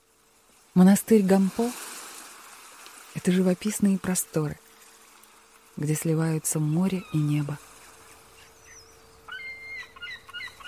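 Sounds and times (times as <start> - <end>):
faint steady hum: 0.0 - 10.6
speech: 0.8 - 1.8, 3.2 - 4.6, 5.8 - 7.7
seagulls and crows calling in the sky over Gampo Abbey monastery: 7.0 - 10.6.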